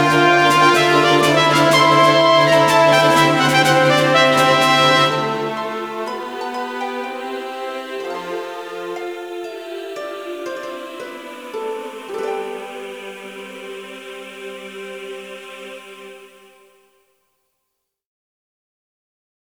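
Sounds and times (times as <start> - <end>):
music medley: 0.0 - 14.7.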